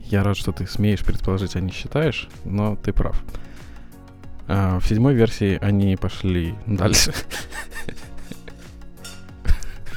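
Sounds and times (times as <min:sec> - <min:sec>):
speech: 0:00.1 - 0:03.6, 0:04.5 - 0:08.0
laughter: 0:06.8 - 0:08.7
dishes scraping and rubbing: 0:07.2 - 0:09.6
dishes clattering in a kitchen: 0:08.3 - 0:09.6
sharp clinks: 0:09.0 - 0:09.3.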